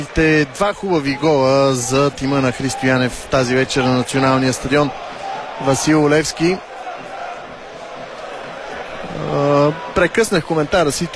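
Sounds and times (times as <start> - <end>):
speech: 0.1 - 6.7, 10.0 - 11.1
stadium fans chanting for a resignation: 1.0 - 10.0.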